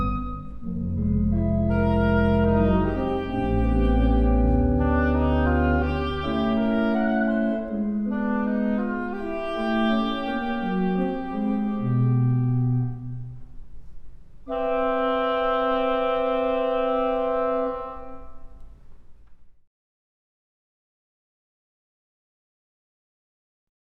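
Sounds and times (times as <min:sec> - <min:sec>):
oboe: 0:00.0 - 0:13.4, 0:14.5 - 0:18.6.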